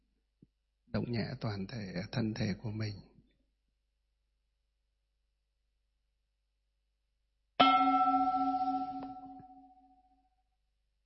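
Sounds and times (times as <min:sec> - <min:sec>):
speech: 0:01.0 - 0:03.1
meditation bell rung: 0:07.6 - 0:09.7.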